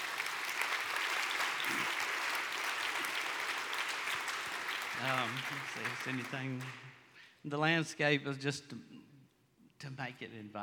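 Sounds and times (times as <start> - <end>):
audience applause: 0.0 - 7.0
speech: 5.0 - 9.0, 9.8 - 10.6.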